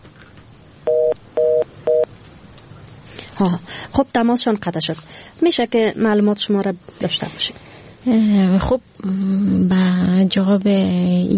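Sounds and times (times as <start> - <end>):
telephone keypad dialing tones: 0.9 - 2.1
speech: 3.4 - 11.3.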